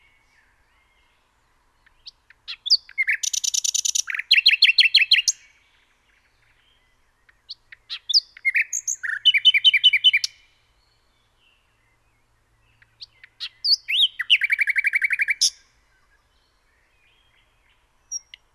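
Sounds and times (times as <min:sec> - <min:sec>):
common nightingale singing: 0:00.0 - 0:18.5.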